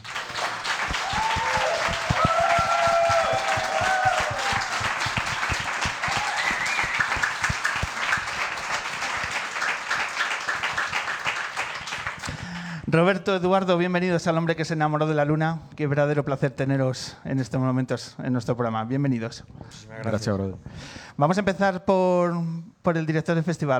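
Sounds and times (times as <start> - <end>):
audience applause: 0.0 - 12.7
faint cheers and whistles: 0.9 - 5.3, 5.9 - 7.5
speech: 13.0 - 23.7.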